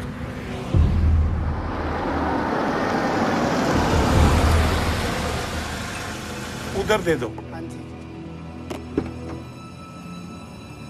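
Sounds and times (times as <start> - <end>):
car engine reversing: 0.2 - 7.2
speech: 6.9 - 7.5.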